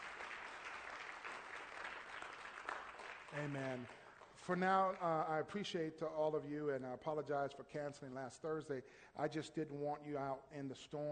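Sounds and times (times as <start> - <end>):
audience applauding: 0.0 - 5.2
speech: 3.3 - 11.1.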